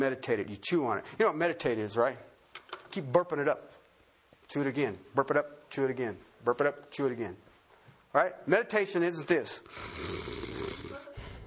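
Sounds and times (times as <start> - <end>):
speech: 0.0 - 2.3, 2.9 - 3.8, 4.5 - 7.4, 8.1 - 10.6
person imitating snoring: 9.6 - 11.2.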